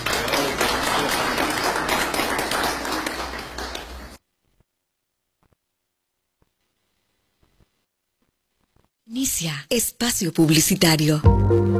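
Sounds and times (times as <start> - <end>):
audience applause at a live event: 0.0 - 4.2
speech: 9.2 - 11.7.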